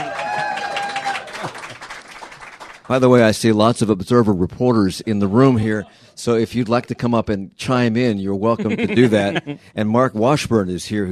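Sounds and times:
audience applause at a live event: 0.0s - 2.9s
speech: 2.9s - 11.0s
laughter: 8.5s - 9.7s.

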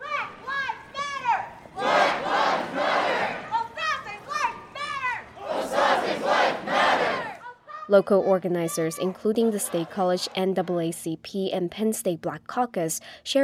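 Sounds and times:
protest crowd chanting during march: 0.0s - 7.7s, 8.3s - 11.0s
speech: 7.9s - 13.4s.

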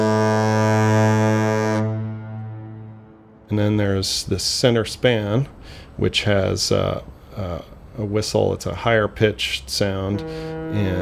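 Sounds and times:
bridge South Tower foghorn deep long blast: 0.0s - 3.5s, 9.9s - 11.0s
speech: 3.5s - 11.0s.

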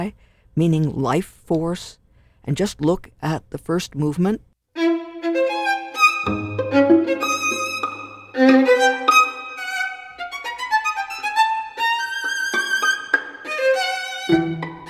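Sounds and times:
speech: 0.0s - 4.5s
bowed violin line in a string quartet: 4.8s - 14.8s
plucked pizzicato strings in a string quartet: 4.8s - 14.8s.

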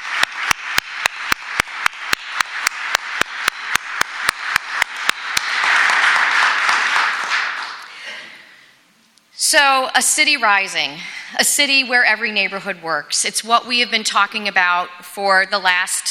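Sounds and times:
audience applause: 0.0s - 8.2s
speech: 9.7s - 16.0s.

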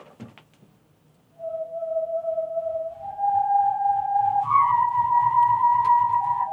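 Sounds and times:
hosepipe whirled overhead whistling: 1.4s - 6.5s.

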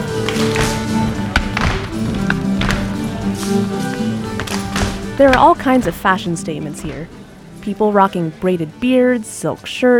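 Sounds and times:
contra dancers clapping: 0.0s - 5.4s
contra dancers stomping: 0.0s - 7.2s
speech: 5.2s - 9.9s.

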